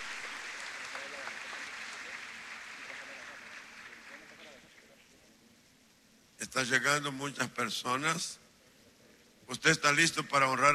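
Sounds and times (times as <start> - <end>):
audience applause: 0.0 - 4.6
speech: 6.5 - 8.4, 9.5 - 10.7.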